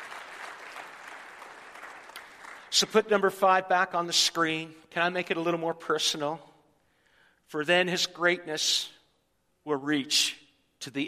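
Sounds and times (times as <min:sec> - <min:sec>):
crowd clapping: 0:00.0 - 0:03.3
speech: 0:02.7 - 0:06.5, 0:07.5 - 0:09.0, 0:09.6 - 0:11.0.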